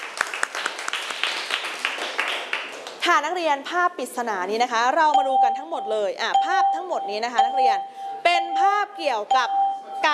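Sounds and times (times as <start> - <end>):
students clapping for themselves in a class: 0.0 - 3.0
speech: 3.0 - 7.9, 8.6 - 10.1.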